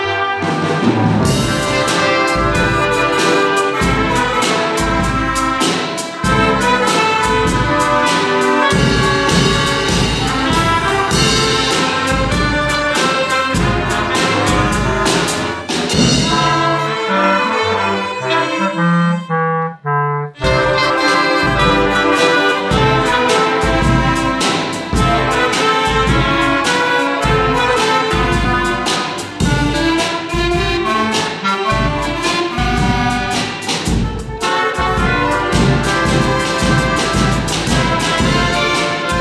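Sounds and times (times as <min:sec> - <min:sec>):
orchestra playing: 0:00.0 - 0:39.1.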